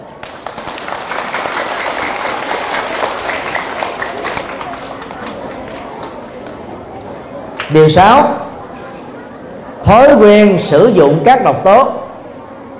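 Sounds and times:
loud applause from audience: 0:00.0 - 0:06.6
speech: 0:07.7 - 0:08.4, 0:09.8 - 0:12.0.

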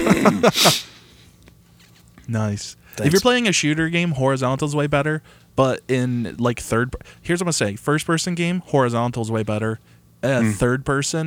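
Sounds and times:
throat clearing: 0:00.0 - 0:00.8, 0:10.4 - 0:10.7
speech: 0:00.2 - 0:00.9, 0:02.3 - 0:11.2.

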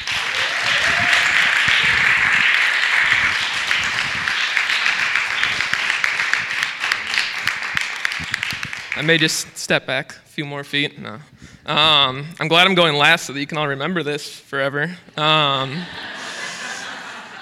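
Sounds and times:
audience applause: 0:00.0 - 0:09.2
laughter: 0:00.3 - 0:06.4, 0:15.5 - 0:17.3
speech: 0:09.0 - 0:16.0.

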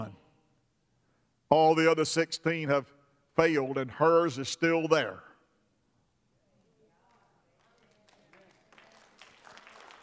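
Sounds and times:
speech: 0:01.5 - 0:05.3
audience clapping: 0:07.0 - 0:10.0.

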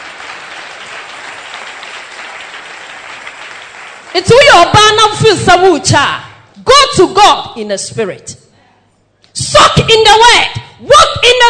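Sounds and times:
audience clapping: 0:00.0 - 0:04.3
speech: 0:04.2 - 0:08.4, 0:09.4 - 0:11.4.

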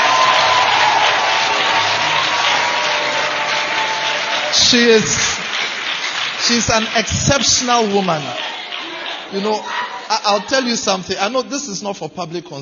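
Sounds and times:
vocal whoop: 0:00.0 - 0:04.6
audience clapping hands: 0:00.0 - 0:10.9
speech: 0:04.7 - 0:05.3, 0:06.4 - 0:08.5, 0:09.3 - 0:12.6.

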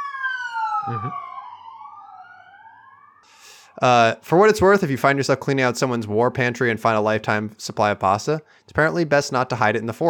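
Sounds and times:
siren passing by: 0:00.0 - 0:03.3
speech: 0:00.8 - 0:01.3, 0:03.8 - 0:10.0.

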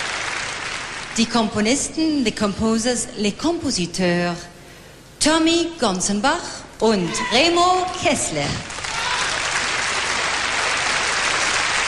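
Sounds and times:
concert audience applause for the composers and performers: 0:00.0 - 0:01.2, 0:08.7 - 0:11.8
speech: 0:01.2 - 0:04.5, 0:05.2 - 0:08.7.

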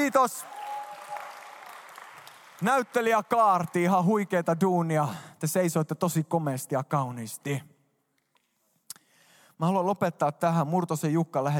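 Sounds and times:
speech: 0:00.0 - 0:00.6, 0:02.6 - 0:07.7, 0:09.6 - 0:11.5
audience applause: 0:00.0 - 0:03.9.

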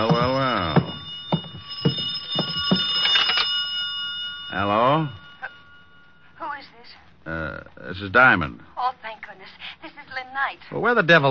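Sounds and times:
telephone ringing: 0:00.0 - 0:06.6
speech: 0:08.0 - 0:08.7, 0:10.4 - 0:11.2.

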